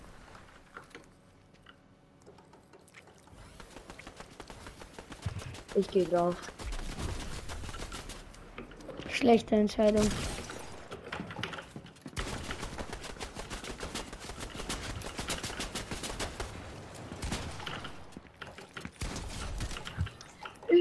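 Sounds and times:
gunfire in the video game The Pit: 3.6 - 8.3, 12.2 - 18.2, 19.0 - 20.2
speech: 5.8 - 6.6, 9.2 - 10.4.

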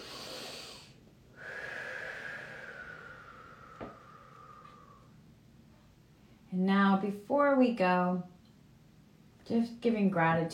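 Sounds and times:
deep breath during a guided Reiki loving-kindness meditation: 0.0 - 5.2
speech: 6.6 - 8.3, 9.5 - 10.5.

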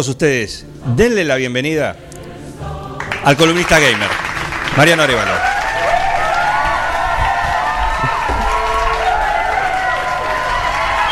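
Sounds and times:
speech: 0.0 - 2.0, 3.2 - 5.5
studio audience applause at a live program: 3.0 - 11.0
shouting crowd voices: 5.4 - 11.0.

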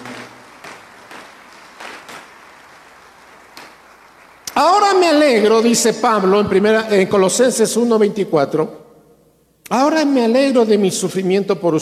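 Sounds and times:
audience applause: 0.0 - 5.0
speech: 4.6 - 8.8, 9.7 - 11.8.

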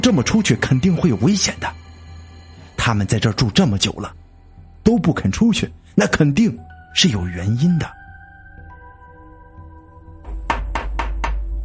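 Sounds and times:
speech: 0.0 - 1.8, 2.8 - 4.2, 4.8 - 8.0
knocking on a door: 10.2 - 11.6.

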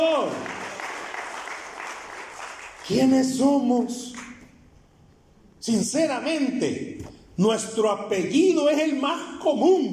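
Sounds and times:
applause: 0.0 - 3.2
speech: 2.9 - 4.2, 5.6 - 9.9.

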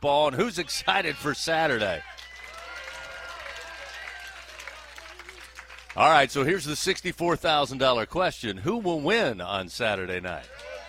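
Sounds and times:
speech: 0.0 - 2.2, 6.0 - 10.7
cheers and excited voices: 0.4 - 5.3, 10.4 - 10.8
crowd applauding: 0.6 - 7.1, 10.2 - 10.8.

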